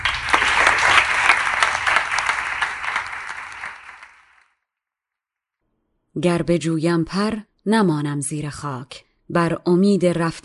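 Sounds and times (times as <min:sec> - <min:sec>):
audience clapping: 0:00.0 - 0:04.6
speech: 0:06.2 - 0:10.4.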